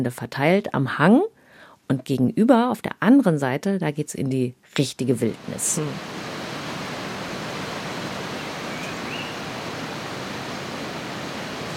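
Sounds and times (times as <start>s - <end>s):
speech: 0.0s - 6.2s
Sagama River water flowing in Sabah: 5.4s - 11.7s.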